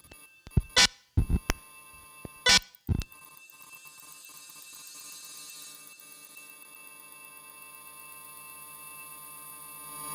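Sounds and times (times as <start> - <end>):
morse code beeps: 0.5 - 1.6, 2.3 - 3.0.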